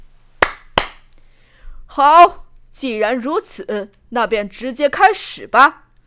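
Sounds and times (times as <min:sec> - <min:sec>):
hands clapping: 0:00.4 - 0:01.1
speech: 0:02.0 - 0:05.8.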